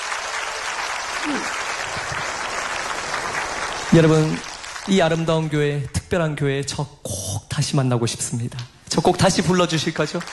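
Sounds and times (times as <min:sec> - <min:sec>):
audience applause: 0:00.0 - 0:05.6, 0:09.3 - 0:10.3
speech: 0:01.2 - 0:01.6, 0:03.9 - 0:10.3.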